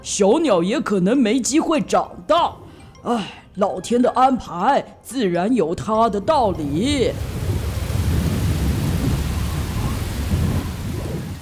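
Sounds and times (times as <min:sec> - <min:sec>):
speech: 0:00.0 - 0:07.4
wind roaring in a storm: 0:06.2 - 0:11.4
heavy rain in a storm: 0:06.4 - 0:11.4.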